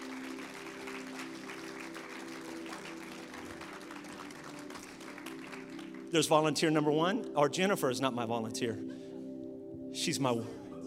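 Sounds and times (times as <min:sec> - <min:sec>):
crowd clapping: 0:00.0 - 0:06.4
speech: 0:06.1 - 0:08.9, 0:10.0 - 0:10.8.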